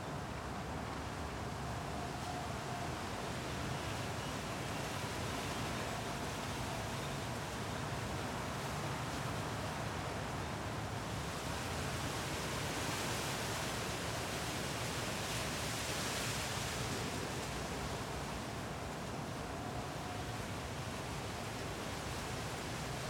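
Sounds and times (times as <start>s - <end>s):
wind at night in Arcueil France: 0.0s - 23.0s.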